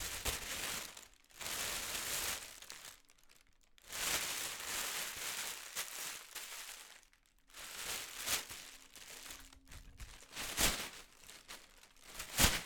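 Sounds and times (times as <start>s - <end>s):
plastic bag: 0.0s - 12.6s.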